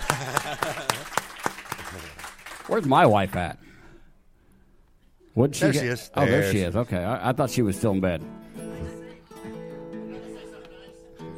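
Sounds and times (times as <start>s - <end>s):
laughter: 0.0s - 2.2s, 10.0s - 11.2s
short burst of applause: 0.0s - 3.4s, 10.6s - 10.8s
speech: 2.7s - 3.6s, 5.4s - 9.0s.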